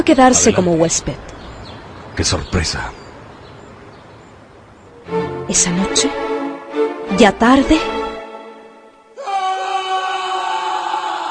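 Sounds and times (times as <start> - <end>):
speech: 0.0 - 1.4, 2.2 - 3.0, 5.1 - 6.2, 7.2 - 8.0
scream echoing through a house: 9.2 - 11.2.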